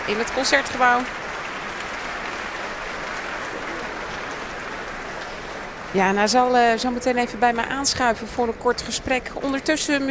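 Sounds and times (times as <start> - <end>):
applause from orchestra musicians: 0.0 - 7.8
speech: 0.1 - 1.3, 5.9 - 10.0.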